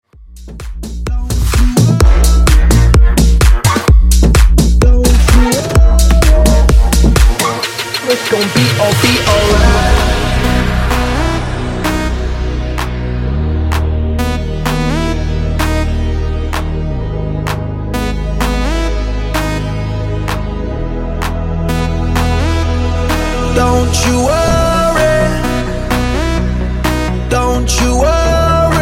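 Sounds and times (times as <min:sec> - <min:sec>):
128 bpm segue music: 0:00.3 - 0:28.8.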